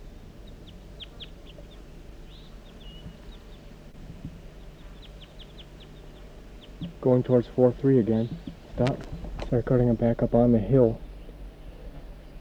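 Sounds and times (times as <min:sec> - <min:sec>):
male crossbill calling: 0:00.0 - 0:12.3
speech: 0:07.0 - 0:11.0.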